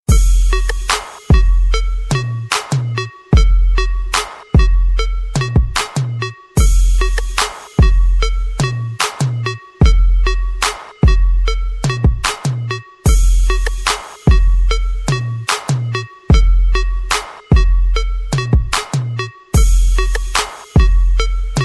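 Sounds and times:
crunk bassline: 0:00.0 - 0:21.6.

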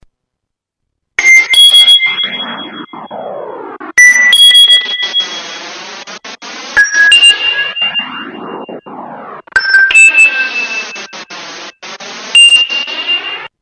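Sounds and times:
electronic ringtone: 0:01.2 - 0:05.6, 0:06.7 - 0:11.4, 0:12.3 - 0:13.5.

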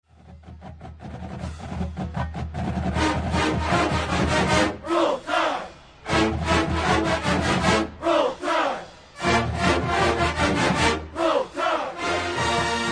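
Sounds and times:
university marching band playing: 0:00.2 - 0:12.9
crowd cheering: 0:03.0 - 0:12.9.

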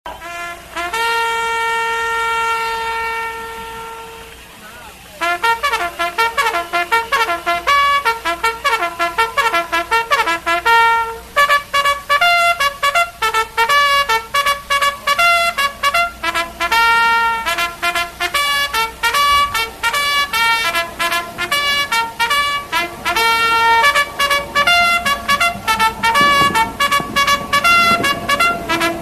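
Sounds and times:
military trumpet call: 0:00.1 - 0:29.0.

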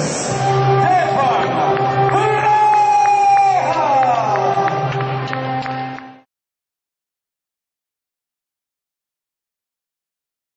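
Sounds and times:
RnB music: 0:00.2 - 0:06.3.

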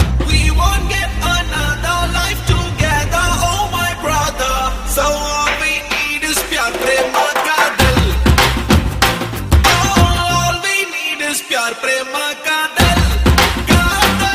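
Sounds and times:
love anthem: 0:00.2 - 0:08.5, 0:09.7 - 0:14.3.

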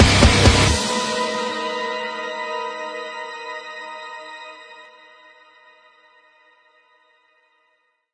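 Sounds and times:
metal remix: 0:00.0 - 0:03.6.

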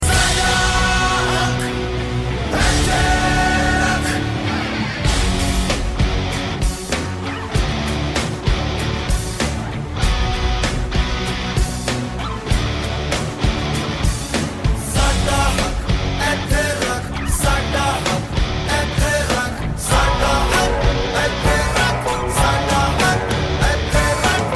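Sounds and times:
guitar: 0:00.0 - 0:24.5.

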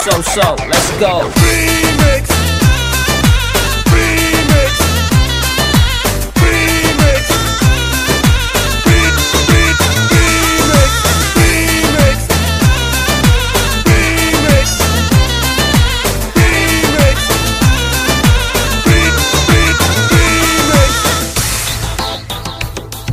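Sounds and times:
Arabic remix music: 0:00.0 - 0:23.1.

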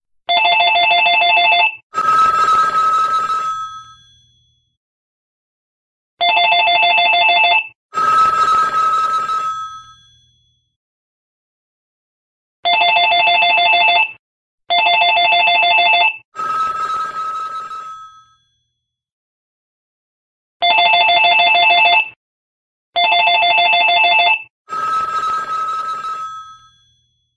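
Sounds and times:
classic office phone ringing: 0:00.3 - 0:04.2, 0:06.2 - 0:10.2, 0:12.6 - 0:18.4, 0:20.6 - 0:22.2, 0:23.0 - 0:27.0.

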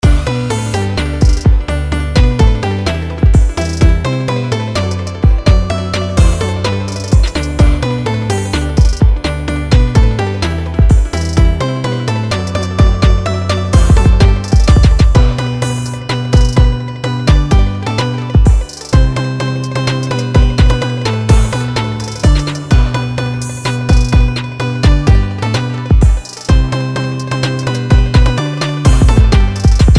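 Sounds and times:
trap remix of a Christmas song: 0:00.0 - 0:29.9.

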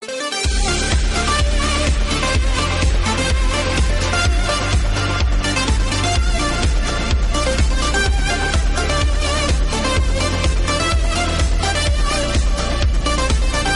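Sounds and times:
trance music: 0:00.0 - 0:13.7.

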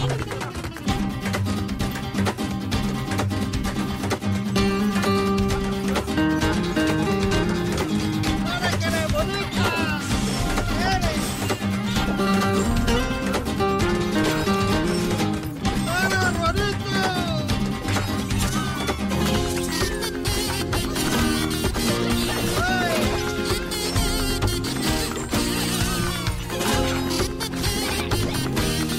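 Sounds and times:
mariachi music: 0:00.0 - 0:28.9.

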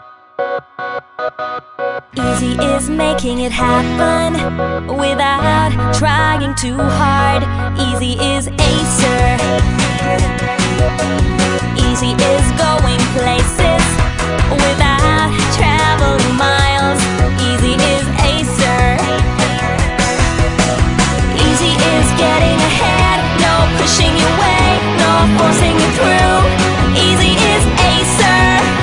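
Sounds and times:
RnB music: 0:00.0 - 0:28.8.

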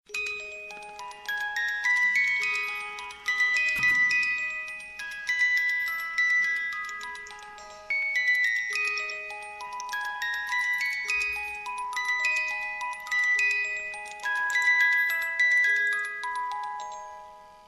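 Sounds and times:
music: 0:00.1 - 0:17.6.

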